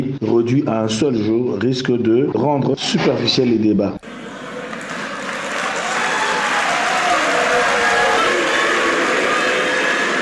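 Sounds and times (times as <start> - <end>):
speech: 0.0 - 4.3
political activists applauding: 4.0 - 10.2.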